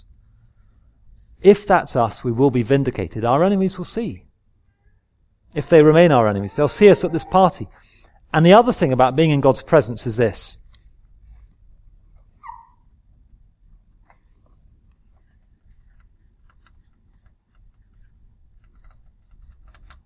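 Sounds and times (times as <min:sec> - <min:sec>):
speech: 0:01.4 - 0:04.3, 0:05.5 - 0:10.6
writing on a board: 0:14.9 - 0:20.0.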